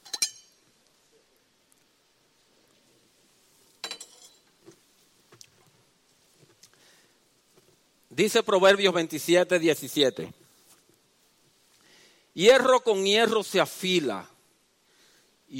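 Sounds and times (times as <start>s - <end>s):
glass clinking while sipping water: 0.0s - 0.6s, 3.8s - 4.5s
speech: 8.2s - 10.4s, 12.4s - 14.3s.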